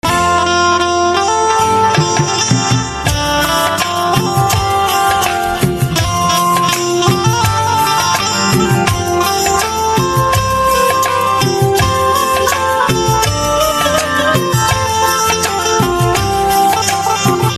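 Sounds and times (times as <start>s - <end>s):
banjo instrumental ringtone: 0.6s - 17.5s.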